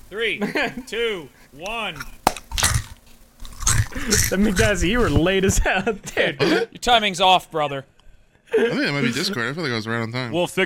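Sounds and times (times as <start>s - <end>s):
speech: 0.1s - 2.2s, 3.9s - 7.9s, 8.5s - 10.6s
biting into a crunchy Cheez-It cracker: 2.0s - 4.8s.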